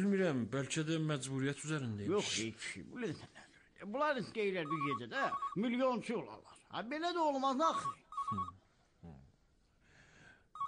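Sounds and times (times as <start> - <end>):
speech: 0.0 - 9.2
telephone ringing in short electronic tone bursts: 4.6 - 5.7, 7.6 - 8.6
faint breathy sounds: 9.8 - 10.6.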